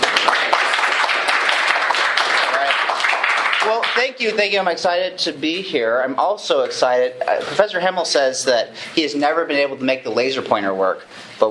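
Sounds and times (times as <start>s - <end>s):
lecture audience applause welcoming a speaker: 0.0s - 4.2s
speech: 4.0s - 11.4s.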